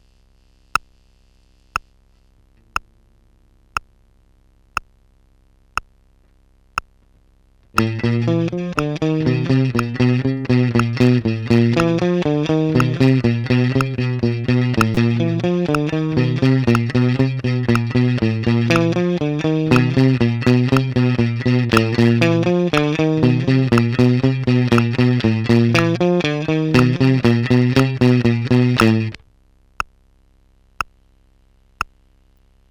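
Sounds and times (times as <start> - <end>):
guitar exercise: 7.7 - 29.2.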